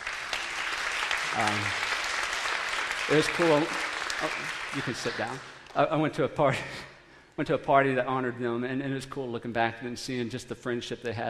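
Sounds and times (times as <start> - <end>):
audience clapping for a graduate: 0.0 - 6.0
speech: 1.4 - 1.9, 3.1 - 11.2.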